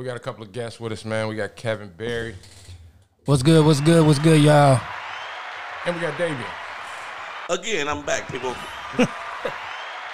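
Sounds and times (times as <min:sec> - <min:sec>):
speech: 0:00.0 - 0:02.6, 0:03.2 - 0:05.0, 0:05.8 - 0:06.6, 0:07.5 - 0:09.6
applause: 0:03.4 - 0:10.1.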